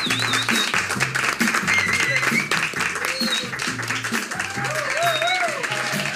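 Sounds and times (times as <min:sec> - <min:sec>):
crowd applauding: 0:00.0 - 0:06.1
crowd cheering and whooping: 0:01.6 - 0:03.6, 0:04.3 - 0:06.1.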